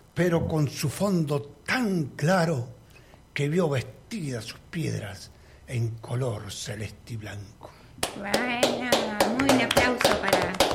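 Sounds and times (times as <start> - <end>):
speech: 0.2 - 2.8, 3.4 - 10.7
rhythmic clapping: 8.0 - 10.7.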